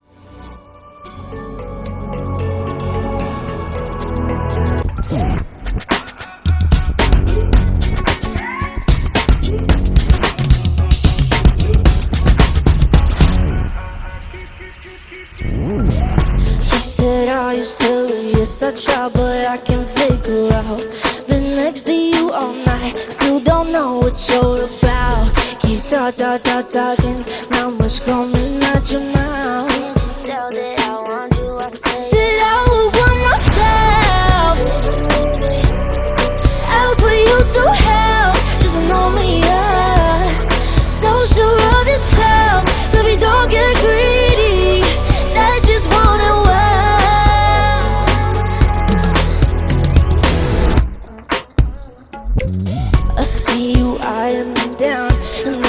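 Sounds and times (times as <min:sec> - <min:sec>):
commercial hip-hop music by a duo: 0:00.1 - 0:55.6.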